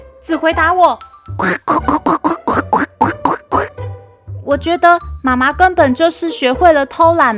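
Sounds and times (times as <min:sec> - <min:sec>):
speech: 0:00.2 - 0:02.4, 0:04.5 - 0:07.3
duck quacking: 0:01.4 - 0:03.7.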